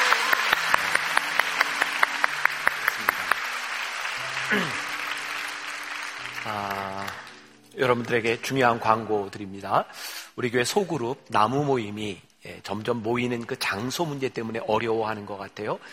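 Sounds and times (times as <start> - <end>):
audience applauding: 0.0 - 8.8
speech: 4.5 - 4.8, 6.4 - 7.0, 7.8 - 15.9.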